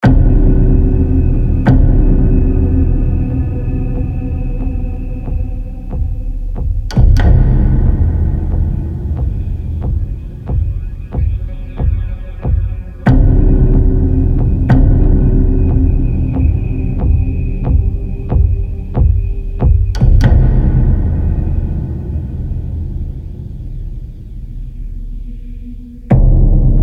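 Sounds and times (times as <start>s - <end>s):
tension hits for a chase: 0.0s - 26.8s.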